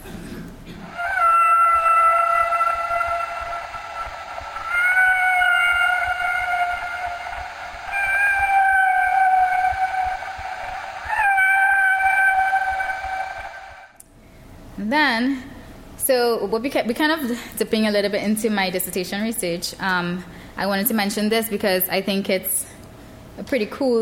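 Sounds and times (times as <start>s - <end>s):
humpback whale song: 0.8s - 14.0s
speech: 16.1s - 22.6s, 23.4s - 23.9s.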